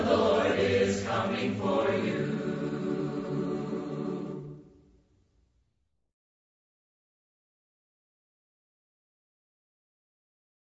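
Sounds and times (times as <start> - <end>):
a cappella hymn: 0.0 - 4.9.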